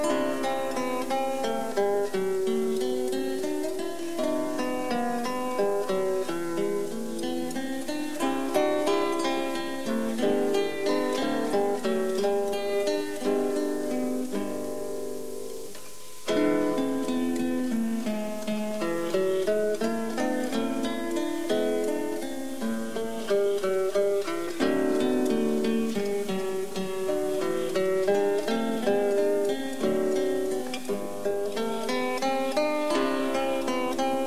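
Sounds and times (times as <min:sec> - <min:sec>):
andante music: 0:00.0 - 0:34.2.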